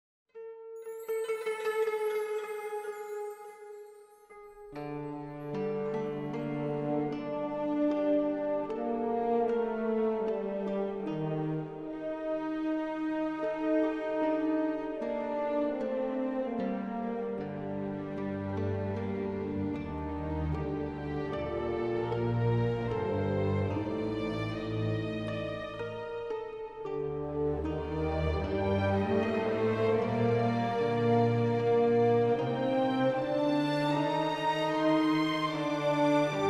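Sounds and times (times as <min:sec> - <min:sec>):
music: 0:00.3 - 0:36.4.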